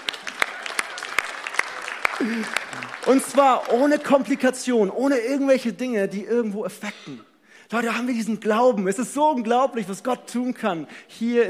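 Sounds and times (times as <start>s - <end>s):
audience applauding: 0.0s - 4.7s
speech: 2.2s - 11.4s.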